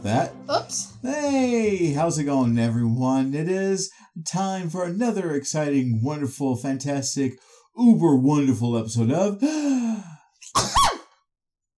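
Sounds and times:
speech: 0.0 - 11.0
sneeze: 10.5 - 11.1.

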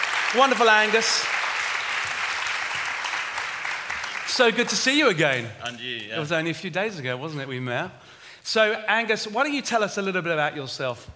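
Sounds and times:
audience applause welcoming a speaker to the stage: 0.0 - 5.6
speech: 0.3 - 1.4, 4.4 - 11.1.

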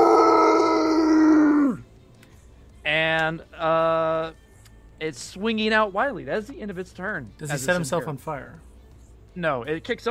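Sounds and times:
person imitating a monster's roar: 0.0 - 1.8
speech: 3.3 - 4.4, 5.0 - 8.7, 9.4 - 10.0.

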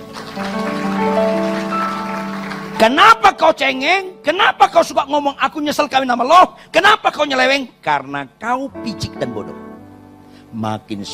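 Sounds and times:
loud applause: 0.0 - 3.3
speech: 2.8 - 9.6, 10.5 - 11.1.

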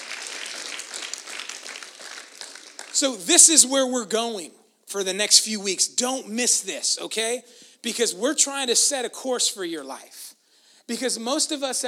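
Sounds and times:
audience applause: 0.0 - 3.4
speech: 3.0 - 10.3, 10.9 - 11.8.

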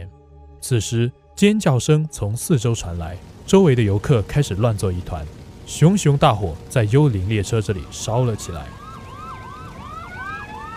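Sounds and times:
speech: 0.6 - 8.8
low engine rumble: 0.7 - 10.7
fire engine siren wailing: 2.2 - 10.7.

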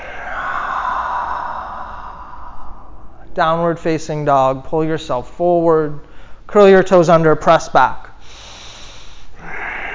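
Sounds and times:
person breathing during a yoga session: 0.0 - 3.3, 6.0 - 6.5, 8.2 - 9.9
speech: 3.4 - 8.0.

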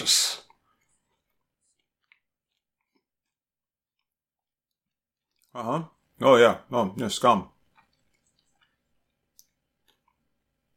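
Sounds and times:
speech: 0.0 - 0.3, 5.6 - 7.5
chewing a mouthful of vodka-soaked marshmallows: 0.4 - 5.6, 7.6 - 10.7.

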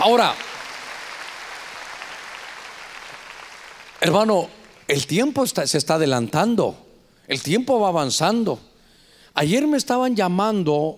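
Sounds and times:
speech: 0.0 - 0.4, 4.0 - 8.7, 9.4 - 10.9
audience clapping: 0.0 - 5.0.

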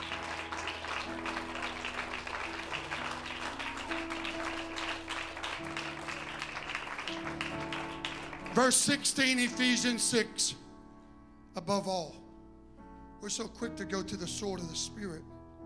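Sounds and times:
audience clapping: 0.0 - 9.4
speech: 8.6 - 10.6, 11.7 - 12.2, 13.2 - 15.3.

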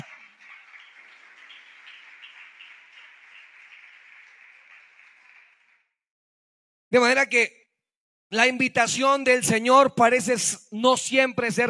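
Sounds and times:
crowd applause: 0.0 - 5.9
speech: 6.9 - 7.6, 8.3 - 11.6.

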